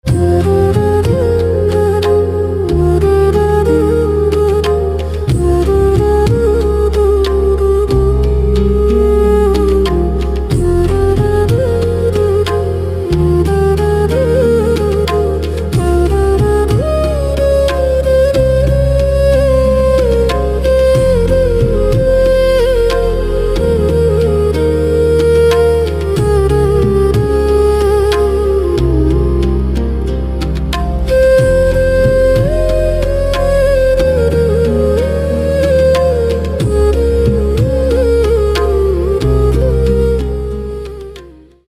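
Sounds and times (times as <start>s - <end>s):
classical flute: 0.0s - 41.6s.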